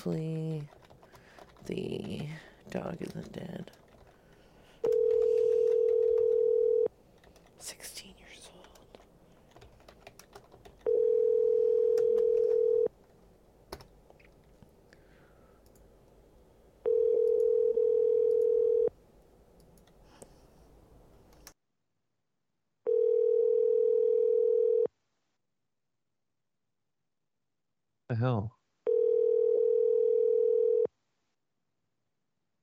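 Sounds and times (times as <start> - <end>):
speech: 0.0 - 0.8, 1.6 - 3.8, 7.6 - 8.2, 28.2 - 28.6
telephone tone: 4.8 - 6.9, 10.8 - 12.9, 16.8 - 18.9, 22.9 - 24.9, 28.9 - 30.9
telephone dialing clicks and tapping: 4.8 - 7.6, 16.9 - 18.7.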